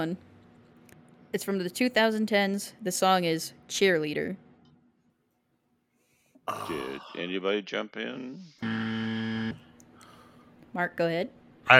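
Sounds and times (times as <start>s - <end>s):
speech: 0.0s - 0.3s, 1.3s - 4.4s, 6.5s - 8.8s, 10.8s - 11.7s
quiz buzzer button being pressed: 8.6s - 9.7s.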